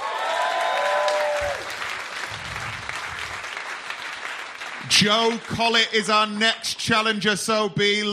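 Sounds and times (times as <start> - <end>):
comedy club audience applauding a comedian: 0.0 - 6.0
speech: 5.0 - 8.1.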